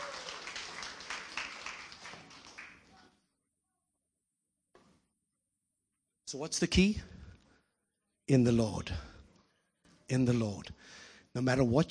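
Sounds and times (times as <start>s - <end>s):
audience applause: 0.0s - 3.1s
speech: 6.3s - 7.2s, 8.3s - 9.1s, 10.1s - 11.8s.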